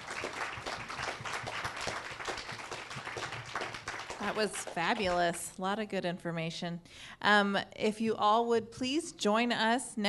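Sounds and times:
crowd applauding a panel: 0.0 - 5.4
speech: 4.2 - 10.0.

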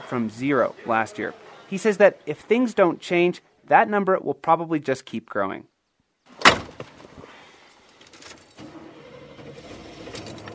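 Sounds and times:
speech: 0.1 - 5.7
car engine starting up: 8.3 - 10.5.

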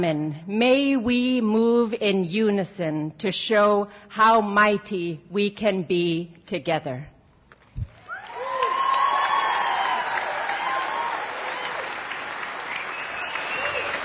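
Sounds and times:
speech: 0.0 - 7.1
scattered cheers and whoops: 8.0 - 14.0
standing ovation applause from large audience: 8.0 - 14.0.

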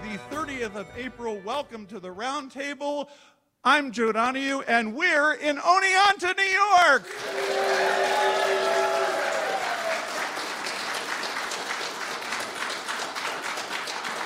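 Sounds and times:
speech: 0.6 - 8.8
audience at a live radio panel show in Oneonta applauding: 7.0 - 14.2.

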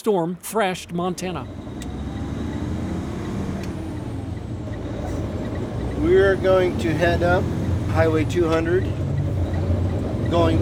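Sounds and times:
speech: 0.0 - 1.6, 6.0 - 9.0, 10.3 - 10.6
Montana Department of Transportation snowplow engine purring: 0.7 - 10.6.

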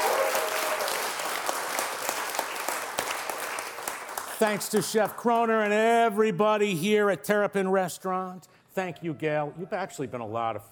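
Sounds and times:
studio audience clapping at Terrapin Restaurant: 0.0 - 6.0
speech: 4.4 - 10.7.

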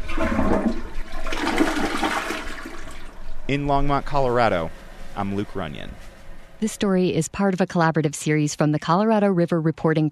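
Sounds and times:
new toilet flushing: 0.0 - 3.2
speech: 3.5 - 10.0.

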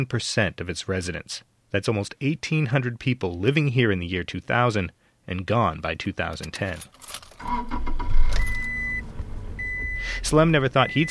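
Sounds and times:
speech: 0.0 - 8.0, 10.0 - 11.0
road rumble: 6.3 - 11.0
car engine hum driving down Route 28 on Cape Cod: 6.5 - 11.0.

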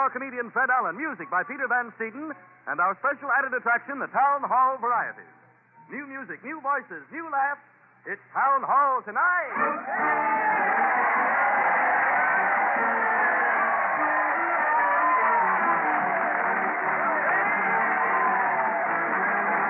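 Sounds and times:
speech: 0.0 - 11.0
crowd cheering: 9.5 - 19.6.

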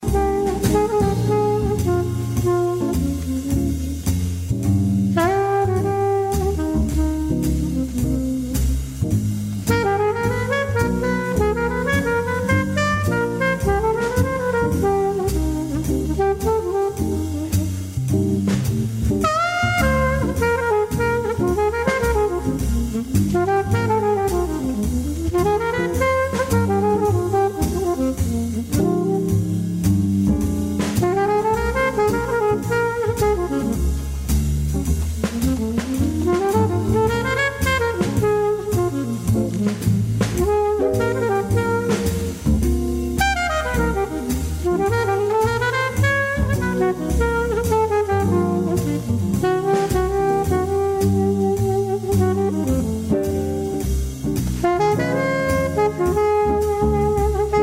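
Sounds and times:
jazz music: 0.0 - 57.6.

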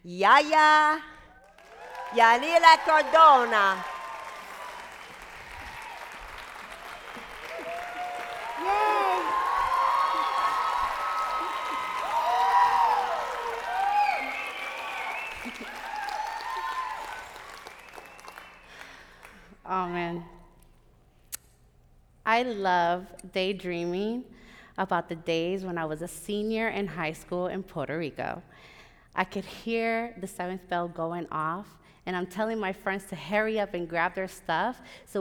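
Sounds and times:
speech: 0.0 - 1.1, 2.1 - 3.9, 19.7 - 20.3, 22.3 - 35.2
audience applause: 1.4 - 19.5.

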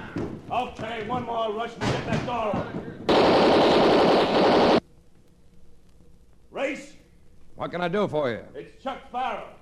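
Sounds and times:
speech: 0.6 - 4.5, 7.6 - 9.6
rapid machine-gun fire: 1.8 - 4.8.

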